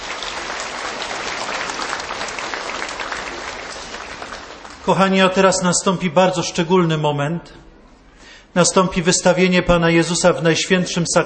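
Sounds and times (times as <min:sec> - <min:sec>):
audience applause: 0:00.0 - 0:05.0
speech: 0:04.8 - 0:07.7, 0:08.6 - 0:11.2.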